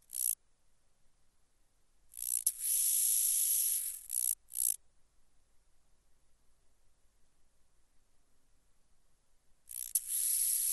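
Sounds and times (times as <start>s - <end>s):
large banded grasshopper song: 0.0s - 0.4s, 2.1s - 4.8s, 9.7s - 10.7s.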